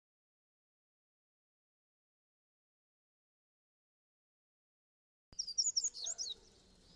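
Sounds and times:
double-collared seedeater twittered song: 0:05.4 - 0:06.4.

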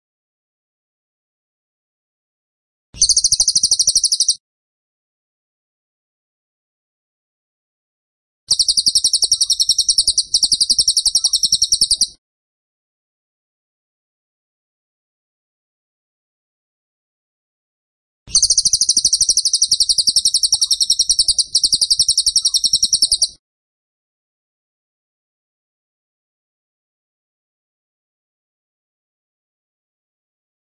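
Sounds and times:
bird singing a fast run of high sharp chirps: 0:03.0 - 0:04.4, 0:08.5 - 0:12.2, 0:18.3 - 0:23.4.

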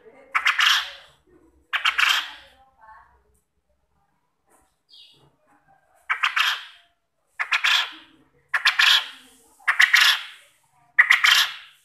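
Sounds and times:
quail calling with soft chirps and loud harsh bursts as a lure: 0:00.3 - 0:01.1, 0:01.7 - 0:02.5, 0:06.1 - 0:10.4, 0:11.0 - 0:11.8.

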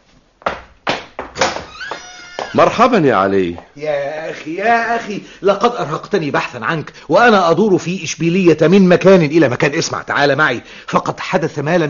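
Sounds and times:
heavy wooden door thuds in a radio drama: 0:00.5 - 0:01.8
speech: 0:02.5 - 0:11.8.

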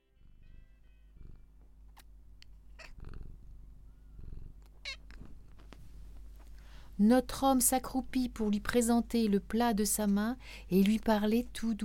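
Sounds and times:
cat purring: 0:00.0 - 0:06.5
speech: 0:07.0 - 0:11.8.

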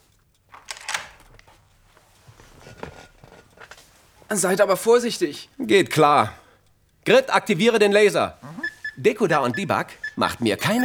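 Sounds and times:
door being closed and locked: 0:00.5 - 0:01.6
speech: 0:04.3 - 0:06.4, 0:07.1 - 0:08.4, 0:09.0 - 0:10.8.

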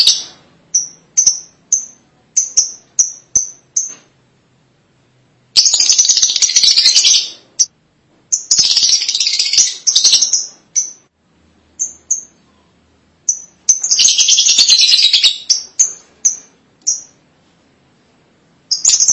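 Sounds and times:
lovebird chirping and chattering: 0:00.0 - 0:04.0, 0:05.6 - 0:07.7, 0:08.3 - 0:11.1, 0:11.8 - 0:17.2, 0:18.7 - 0:19.1.

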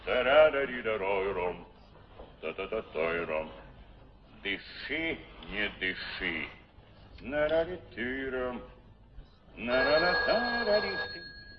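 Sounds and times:
speech: 0:00.2 - 0:01.7, 0:02.4 - 0:03.7, 0:04.4 - 0:06.6, 0:07.2 - 0:08.8, 0:09.6 - 0:11.2
telephone ringing with warbling electronic bursts: 0:09.6 - 0:11.5.

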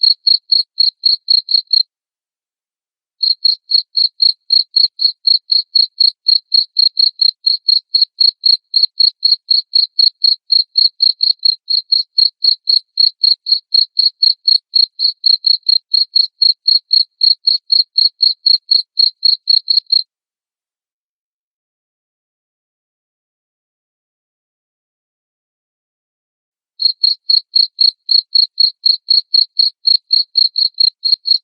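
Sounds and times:
cricket chirping: 0:00.0 - 0:01.8, 0:03.2 - 0:20.0, 0:26.8 - 0:31.4.

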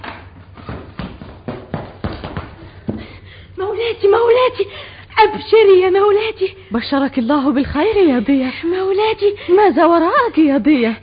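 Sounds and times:
quick hurried footsteps rushing toward a chamber: 0:00.0 - 0:03.6
speech: 0:03.8 - 0:11.0.

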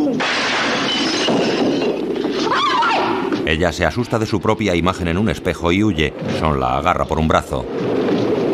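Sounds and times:
window pane breaking from a thrown stone inside a house: 0:00.2 - 0:02.5
speech: 0:03.5 - 0:08.3.

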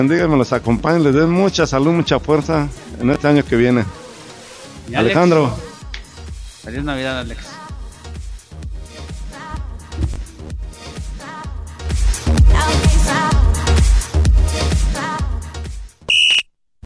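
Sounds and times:
speech: 0:00.0 - 0:04.0, 0:04.9 - 0:05.7, 0:06.6 - 0:07.6
busy music: 0:00.0 - 0:15.9
referee's final whistle blast: 0:16.1 - 0:16.5.

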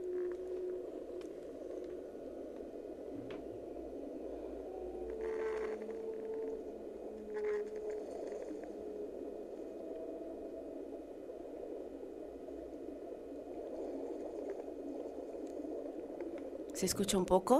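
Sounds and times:
bubbling hissing underwater noise: 0:00.0 - 0:17.5
whale song: 0:00.0 - 0:17.5
speech: 0:16.8 - 0:17.5.

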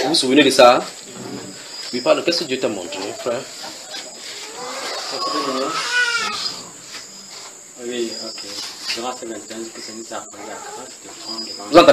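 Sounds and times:
crickets chirring: 0:00.0 - 0:11.9
speech: 0:00.1 - 0:01.3, 0:01.9 - 0:03.8, 0:07.8 - 0:11.9
cat meowing outdoors: 0:04.5 - 0:06.6.

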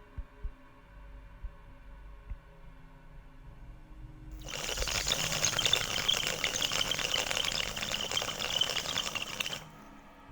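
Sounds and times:
bubbling draw on bamboo water pipe: 0:04.4 - 0:09.9.

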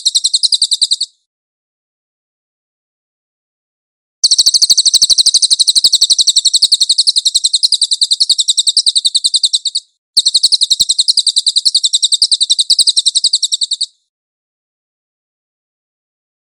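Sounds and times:
cililin bird singing shrill trill: 0:00.0 - 0:01.3, 0:04.2 - 0:14.1.

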